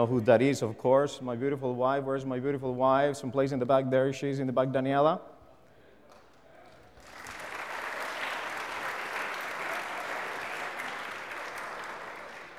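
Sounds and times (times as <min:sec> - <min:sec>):
speech: 0:00.0 - 0:05.3
crowd applauding: 0:06.1 - 0:12.5.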